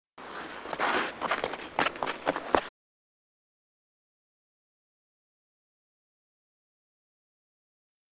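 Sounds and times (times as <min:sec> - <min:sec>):
hockey skates fast dig run: 0:00.2 - 0:02.7.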